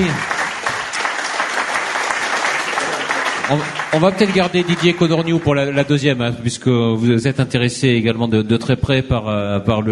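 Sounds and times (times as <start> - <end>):
speech: 0.0 - 0.4, 3.5 - 9.9
audience applauding the speakers: 0.0 - 6.2.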